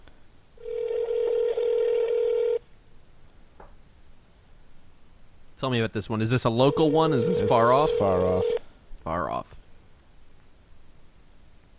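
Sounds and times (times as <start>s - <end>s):
outgoing phone call ringback tone: 0.6s - 2.6s, 6.6s - 8.6s
speech: 5.6s - 9.6s.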